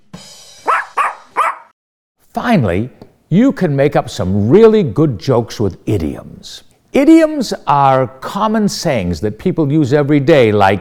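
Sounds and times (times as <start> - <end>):
dog barking: 0.6 - 1.7
speech: 2.4 - 10.8.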